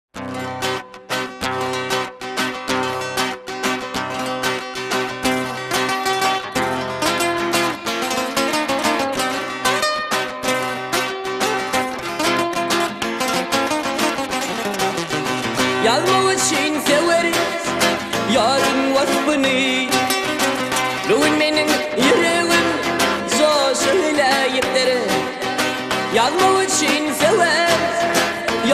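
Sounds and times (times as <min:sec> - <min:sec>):
Turkmen guitar playing: 0:00.2 - 0:28.7.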